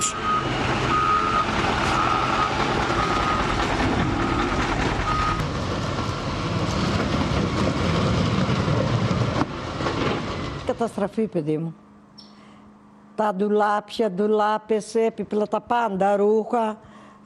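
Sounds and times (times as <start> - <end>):
construction machinery reversing alarm beeping: 0.0 - 5.4
heavy construction machinery rumbling and clattering: 0.0 - 11.3
speech: 10.8 - 11.8, 13.2 - 17.2.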